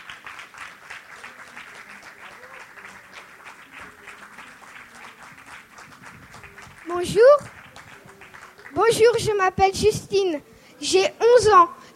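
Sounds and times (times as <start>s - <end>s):
warm audience applause: 0.0s - 9.2s
speech: 7.0s - 7.6s, 8.8s - 11.9s.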